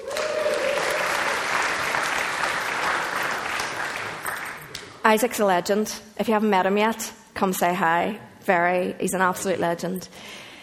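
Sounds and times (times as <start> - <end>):
crowd cheering: 0.0 - 4.7
audience applause: 0.0 - 4.8
speech: 5.0 - 10.4.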